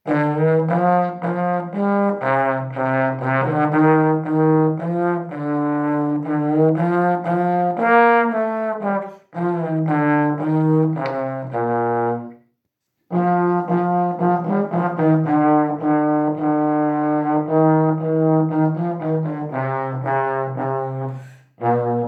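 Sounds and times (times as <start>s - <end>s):
trombone melody: 0.0s - 12.4s, 13.1s - 22.0s.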